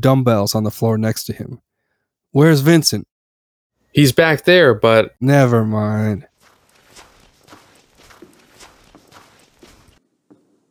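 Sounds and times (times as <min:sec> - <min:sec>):
speech: 0:00.0 - 0:01.7, 0:02.3 - 0:03.1, 0:03.9 - 0:06.3
footsteps walking: 0:06.3 - 0:10.6.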